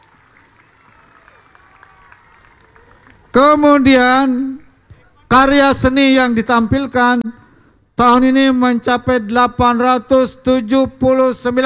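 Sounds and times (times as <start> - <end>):
audience applause: 0.0 - 3.4
speech: 3.4 - 4.6, 5.3 - 7.4, 8.0 - 11.6.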